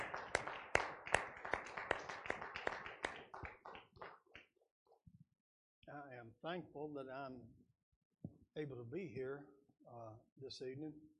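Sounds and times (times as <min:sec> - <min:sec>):
audience hand clapping: 0:00.0 - 0:04.5
speech: 0:06.3 - 0:07.6, 0:08.6 - 0:11.1.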